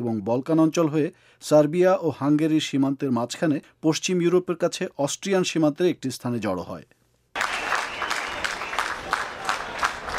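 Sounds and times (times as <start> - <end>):
speech: 0.0 - 7.0
crowd clapping to welcome refugees arriving by train in Vienna: 7.4 - 10.1.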